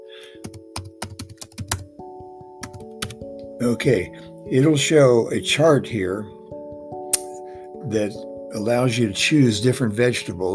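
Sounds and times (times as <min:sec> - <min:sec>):
typing a food type into a website on a computer keyboard: 0:00.4 - 0:03.4
speech: 0:03.6 - 0:06.4, 0:07.9 - 0:10.5.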